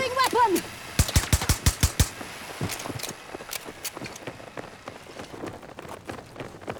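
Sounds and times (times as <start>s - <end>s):
M60 machine gun firing in a video game: 0.0s - 4.2s.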